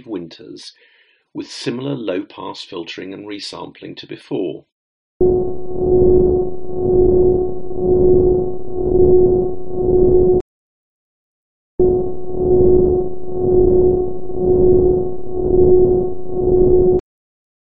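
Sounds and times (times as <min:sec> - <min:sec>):
speech: 0:00.0 - 0:06.2
sonified solar PV generation data hum: 0:05.2 - 0:10.4, 0:11.8 - 0:17.0.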